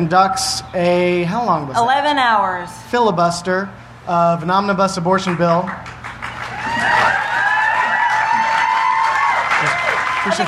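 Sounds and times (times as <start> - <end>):
speech: 0.0 - 6.0, 10.3 - 10.4
crowd applauding: 5.2 - 10.4.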